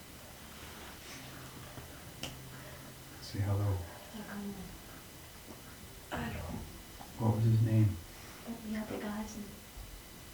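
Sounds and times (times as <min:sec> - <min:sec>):
finger snap: 0:02.2 - 0:02.4
speech: 0:03.3 - 0:04.8, 0:07.2 - 0:09.7.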